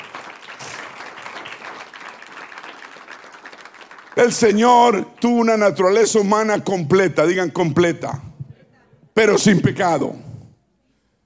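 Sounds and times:
audience applause: 0:00.0 - 0:04.6
speech: 0:04.2 - 0:08.3, 0:09.2 - 0:10.2.

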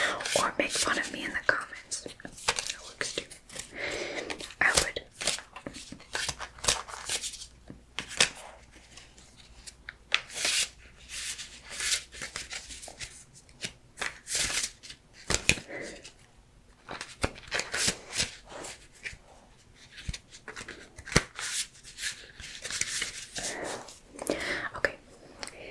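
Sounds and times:
person whispering: 0:00.0 - 0:03.3, 0:04.6 - 0:05.1, 0:23.4 - 0:25.6
speech: 0:00.4 - 0:02.5
cards shuffled and mixed by hand: 0:02.1 - 0:03.7, 0:04.3 - 0:16.2, 0:16.8 - 0:19.2, 0:19.8 - 0:24.0.

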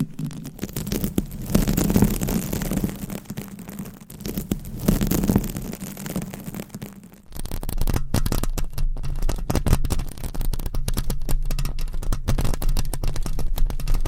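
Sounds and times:
scratching on a microphone: 0:00.0 - 0:14.0.

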